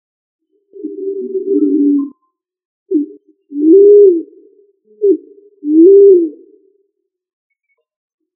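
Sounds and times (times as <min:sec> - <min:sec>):
pigeon cooing: 0:00.6 - 0:02.2, 0:02.9 - 0:06.7.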